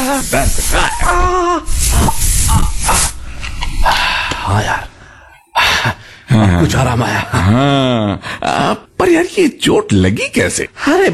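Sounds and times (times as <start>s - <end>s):
pain relief spray can hissing: 0.0s - 4.5s
speech: 0.1s - 3.1s, 6.6s - 11.1s.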